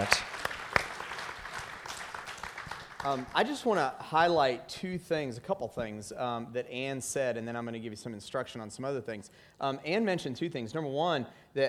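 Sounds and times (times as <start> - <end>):
speech: 0.0 - 0.2, 3.0 - 11.6
audience applause: 0.0 - 3.6.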